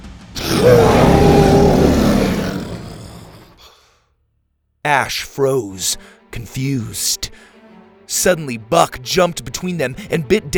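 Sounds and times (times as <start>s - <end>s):
dinosaur roar: 0.4s - 3.8s
speech: 4.9s - 7.5s, 8.1s - 10.5s.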